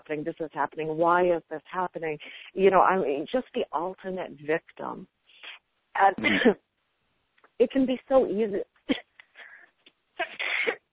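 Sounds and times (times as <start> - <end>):
speech: 0.1 - 5.2, 6.0 - 6.7, 7.6 - 9.1
person fighting allergies sneezing: 10.2 - 10.9.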